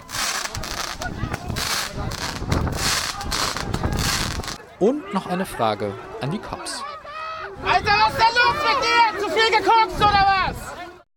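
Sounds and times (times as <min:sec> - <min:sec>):
fireworks crackling and hissing: 0:00.0 - 0:04.6
speech: 0:04.8 - 0:06.9, 0:07.6 - 0:10.6.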